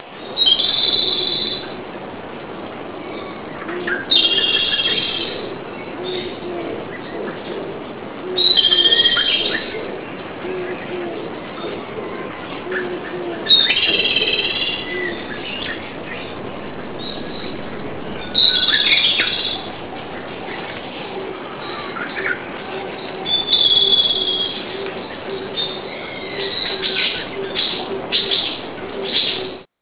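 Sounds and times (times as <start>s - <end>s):
birds: 0.0s - 29.7s.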